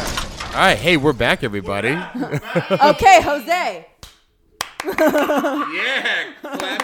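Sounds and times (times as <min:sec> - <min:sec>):
speech: 0:00.6 - 0:03.9, 0:04.8 - 0:06.8
laughter: 0:01.9 - 0:03.3, 0:04.9 - 0:06.8
hand claps: 0:04.0 - 0:05.5, 0:06.5 - 0:06.8.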